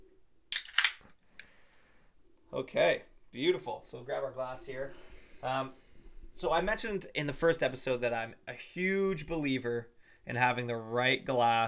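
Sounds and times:
beer container being cracked open: 0.5 - 1.1
speech: 2.6 - 5.8, 6.4 - 11.6.

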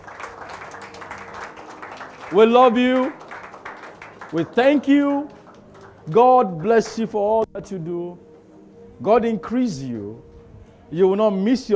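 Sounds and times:
audience clapping hands: 0.0 - 7.5
speech: 2.3 - 3.2, 4.3 - 5.4, 6.1 - 8.3, 9.0 - 10.3, 10.9 - 11.7.

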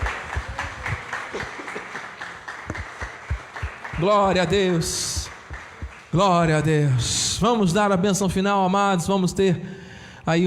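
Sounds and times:
audience applause: 0.0 - 7.0
speech: 4.0 - 5.1, 6.1 - 10.4.

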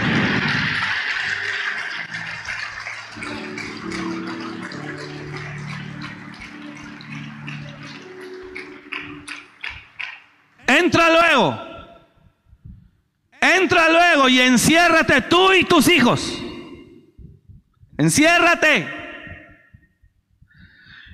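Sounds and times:
audience applauding: 0.0 - 11.1
speech: 13.7 - 16.4, 18.0 - 19.0.

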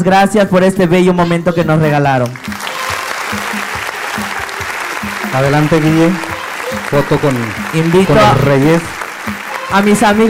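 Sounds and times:
speech: 0.0 - 2.6, 5.3 - 6.3, 6.9 - 9.0, 9.7 - 10.2
audience applause: 2.4 - 10.2.

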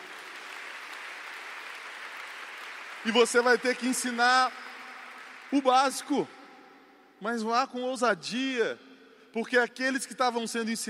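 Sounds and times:
crowd applauding: 0.0 - 6.3
speech: 3.0 - 4.6, 5.5 - 6.4, 7.2 - 10.8.

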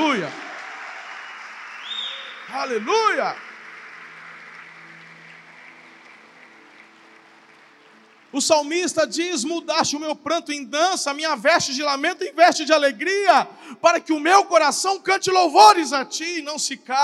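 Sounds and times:
audience applauding: 0.0 - 9.4
speech: 0.2 - 0.5, 2.5 - 3.5, 8.4 - 17.0.

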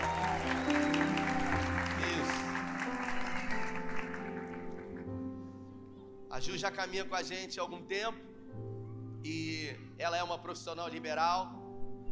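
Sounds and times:
audience applause: 0.0 - 5.2
speech: 6.4 - 8.3, 10.0 - 11.6.

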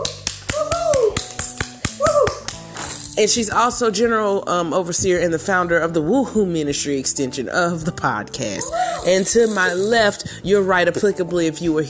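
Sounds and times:
clapping: 0.0 - 2.7
speech: 3.2 - 11.8.

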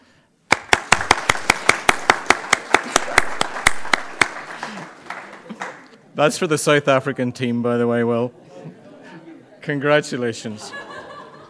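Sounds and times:
round of applause: 0.5 - 6.0
laughter: 2.7 - 3.7, 4.5 - 5.8, 8.3 - 9.9, 10.5 - 11.4
speech: 6.2 - 8.4, 9.6 - 10.9.

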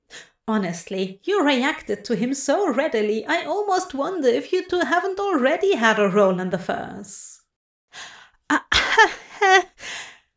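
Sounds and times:
speech: 0.5 - 7.4
person coughing: 8.5 - 9.7.

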